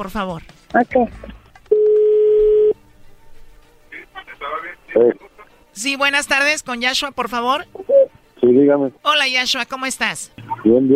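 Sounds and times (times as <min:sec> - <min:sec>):
speech: 0:00.0 - 0:01.4, 0:05.0 - 0:07.8, 0:08.4 - 0:10.9
telephone line dialing out tone: 0:01.7 - 0:02.8.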